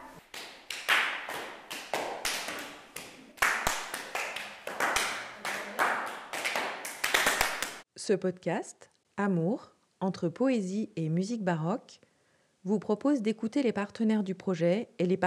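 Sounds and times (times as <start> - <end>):
single hand claps passed around a group: 0.2 - 7.8
speech: 8.0 - 15.2.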